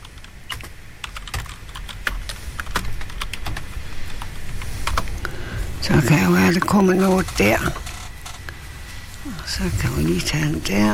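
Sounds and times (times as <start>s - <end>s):
typing on a computer keyboard: 0.0s - 5.2s
speech: 5.9s - 7.8s, 9.5s - 10.9s.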